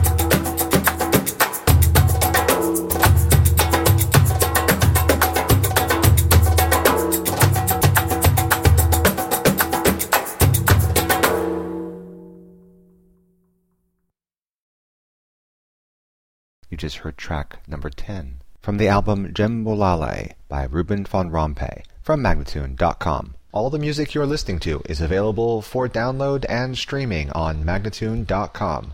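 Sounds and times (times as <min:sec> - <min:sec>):
djembe drumming: 0:00.0 - 0:12.6
person speaking fast: 0:16.7 - 0:28.9.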